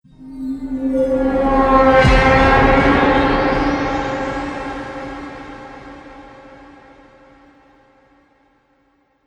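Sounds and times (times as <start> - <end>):
sci-fi trailer metallic impact hit: 0.7 - 7.2.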